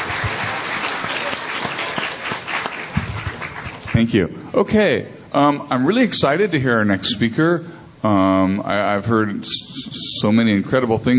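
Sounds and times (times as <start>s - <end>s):
crowd applauding: 0.0s - 4.2s
speech: 4.0s - 11.1s.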